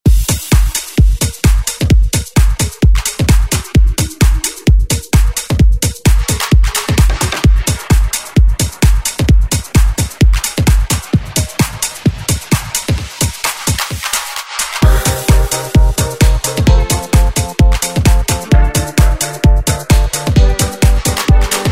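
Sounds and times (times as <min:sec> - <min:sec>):
Latin house music: 0:00.0 - 0:21.6.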